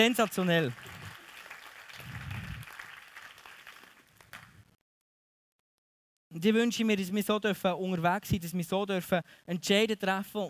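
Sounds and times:
speech: 0:00.0 - 0:01.0, 0:06.3 - 0:10.4
audience applause: 0:00.0 - 0:04.6.

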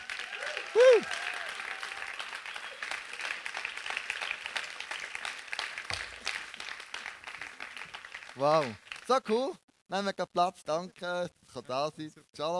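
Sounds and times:
large audience applauding: 0:00.0 - 0:09.6
speech: 0:08.4 - 0:12.5.

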